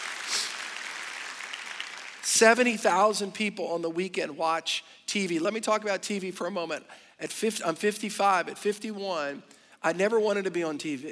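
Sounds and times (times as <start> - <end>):
crowd clapping: 0.0 - 2.7
speech: 2.4 - 11.1.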